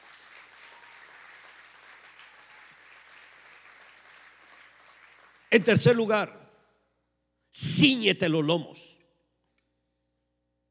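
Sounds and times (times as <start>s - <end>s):
audience applause: 0.0s - 5.7s
speech: 5.5s - 6.4s, 7.6s - 8.9s.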